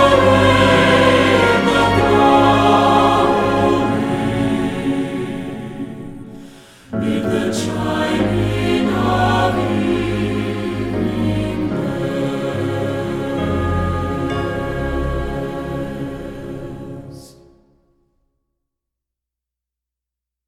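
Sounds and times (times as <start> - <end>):
choir singing: 0.0 - 17.7.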